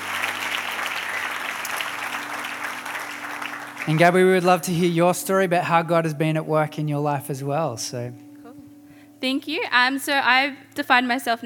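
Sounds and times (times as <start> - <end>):
audience applause: 0.0 - 5.0
speech: 3.9 - 8.2, 9.2 - 11.4.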